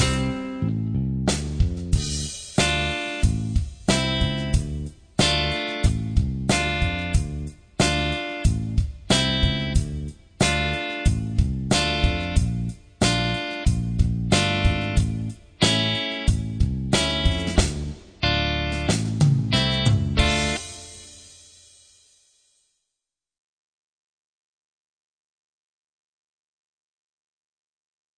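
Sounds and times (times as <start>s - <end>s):
rock and blues bass solo playback: 0.0s - 20.9s.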